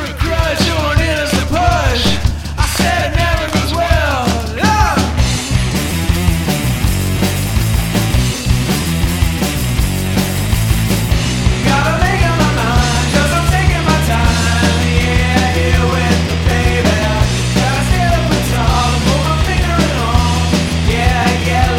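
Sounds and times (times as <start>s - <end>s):
wrecked chords: 0.2s - 21.7s.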